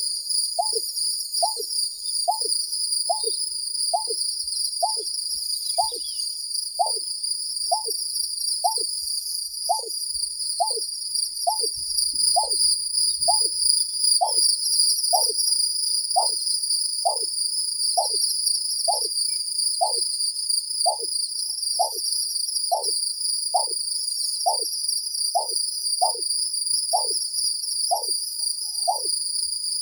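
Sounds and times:
greater painted snipe Rostratula benghalensis calling: 0:00.6 - 0:00.8, 0:01.4 - 0:01.7, 0:02.3 - 0:02.5, 0:03.1 - 0:03.4, 0:04.0 - 0:04.2, 0:04.8 - 0:05.1, 0:05.8 - 0:06.2, 0:06.8 - 0:07.0, 0:07.7 - 0:08.0, 0:08.6 - 0:08.9, 0:09.7 - 0:09.9, 0:10.6 - 0:10.8, 0:11.5 - 0:11.7, 0:12.4 - 0:12.6, 0:13.3 - 0:13.5, 0:14.2 - 0:14.4, 0:15.2 - 0:15.4, 0:16.2 - 0:16.4, 0:17.1 - 0:17.3, 0:18.0 - 0:18.2, 0:18.9 - 0:19.1, 0:19.8 - 0:20.0, 0:20.9 - 0:21.1, 0:21.8 - 0:22.0, 0:22.7 - 0:23.0, 0:23.6 - 0:23.8, 0:24.5 - 0:24.7, 0:25.4 - 0:26.2, 0:27.0 - 0:27.2, 0:27.9 - 0:28.2, 0:28.9 - 0:29.1.

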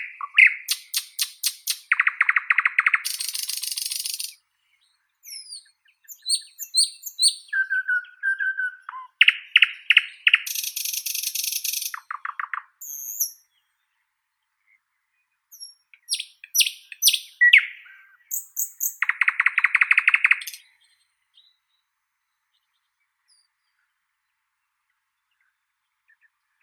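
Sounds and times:
common nightingale Luscinia luscinia singing: 0:00.0 - 0:13.8, 0:15.5 - 0:21.9.

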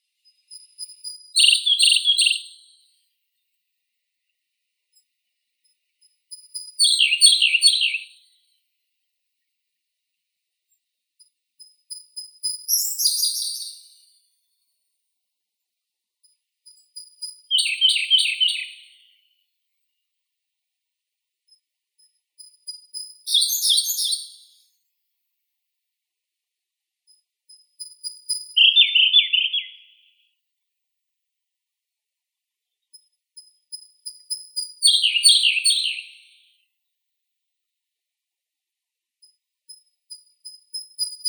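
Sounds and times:
Siberian blue robin Luscinia cyane singing: 0:00.3 - 0:02.7, 0:06.0 - 0:08.3, 0:16.7 - 0:19.2, 0:22.4 - 0:24.6, 0:27.5 - 0:30.2, 0:33.0 - 0:36.4.

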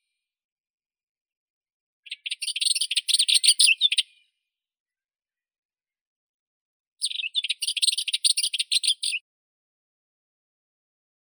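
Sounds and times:
Sylvia rueppelli warbler singing: 0:02.0 - 0:04.2, 0:07.0 - 0:09.2.

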